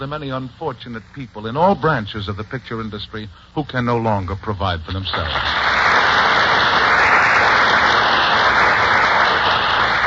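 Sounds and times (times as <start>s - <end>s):
speech: 0.0s - 6.0s
burst of studio audience applause: 5.1s - 10.0s.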